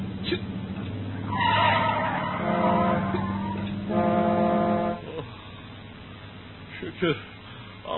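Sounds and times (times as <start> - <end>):
engine rumble: 0.0 - 7.9
vehicle braking hard and swerving: 1.3 - 3.9
speech: 7.0 - 7.3.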